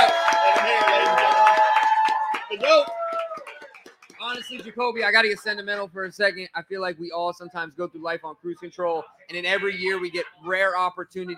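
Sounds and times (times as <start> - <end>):
audience applause: 0.0 - 5.6
speech: 4.4 - 11.3.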